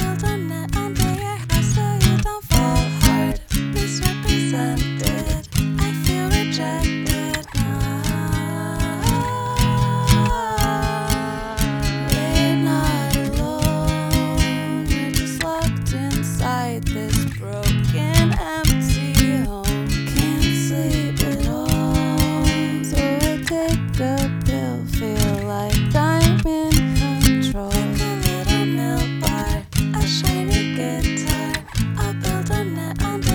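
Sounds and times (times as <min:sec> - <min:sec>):
shiny guitar: 0:00.0 - 0:33.3.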